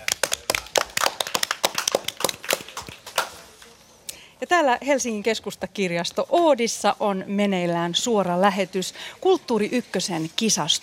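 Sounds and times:
audience applause: 0.0 - 3.4
speech: 4.4 - 10.8.

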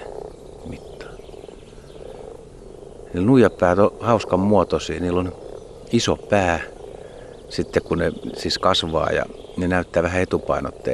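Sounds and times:
frogs croaking at a pond: 0.0 - 10.9
speech: 3.2 - 6.7, 7.5 - 10.9.

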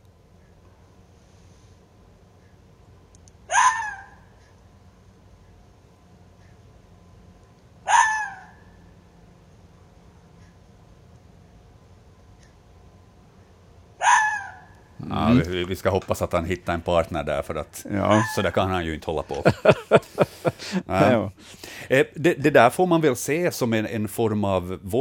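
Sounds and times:
faint steady low hum: 0.0 - 24.9
male red fox mating bark: 3.5 - 4.3, 7.8 - 8.8, 14.0 - 14.7, 18.1 - 18.4
speech: 15.2 - 24.9
laughter: 19.2 - 21.3.

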